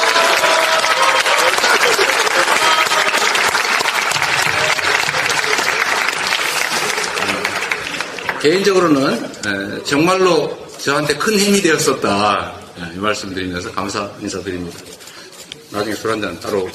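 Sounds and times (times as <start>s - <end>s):
applause: 0.0s - 9.1s
speech: 8.4s - 15.1s, 15.7s - 16.7s.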